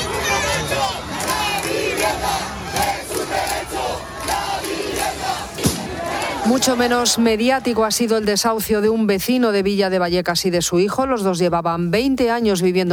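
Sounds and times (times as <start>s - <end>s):
protest crowd shouting in support: 0.0s - 8.5s
speech: 6.5s - 12.9s.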